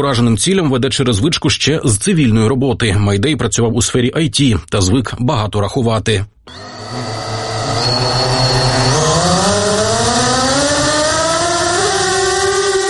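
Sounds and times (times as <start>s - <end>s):
speech: 0.0s - 7.3s
interceptor drone motor whine taking off: 6.5s - 12.8s.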